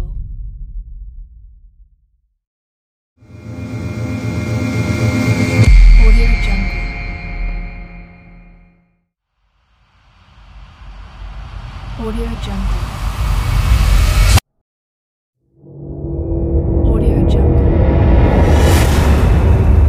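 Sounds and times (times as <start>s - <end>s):
transition effects: 3.2s - 8.6s, 9.7s - 14.4s, 15.6s - 19.8s.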